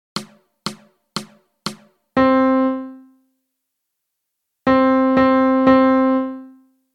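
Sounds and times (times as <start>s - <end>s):
melody: 2.2s - 3.2s, 4.7s - 6.6s.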